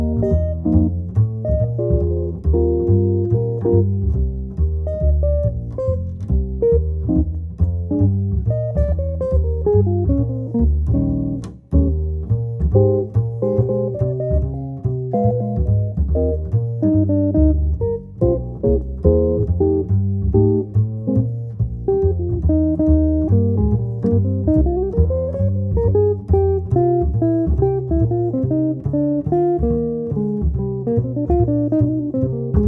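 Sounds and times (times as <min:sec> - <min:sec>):
guitar: 0:00.0 - 0:32.6.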